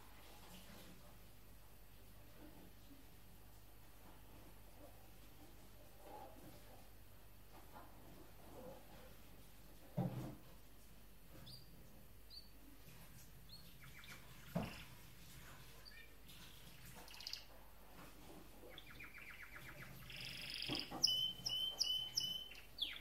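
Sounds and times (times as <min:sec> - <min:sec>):
canary singing: 0:11.4 - 0:11.7, 0:12.3 - 0:12.6, 0:13.5 - 0:14.9, 0:17.0 - 0:17.5, 0:18.7 - 0:22.9.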